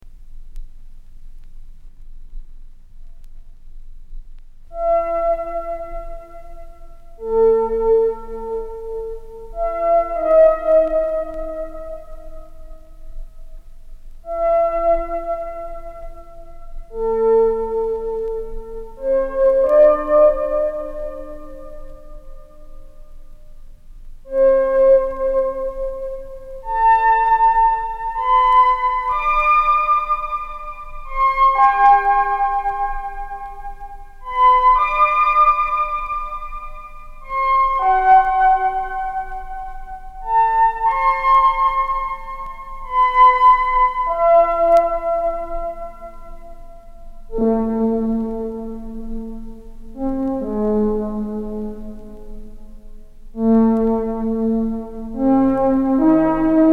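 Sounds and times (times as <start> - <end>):
solo underscore tune: 0.1 - 56.7.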